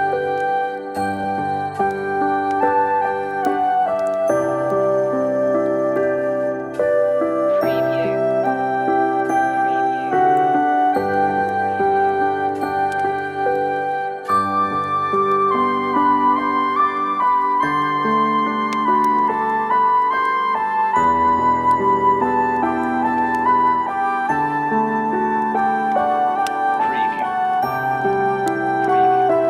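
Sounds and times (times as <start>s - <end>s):
relaxing Christmas on-hold music: 0.0s - 29.4s.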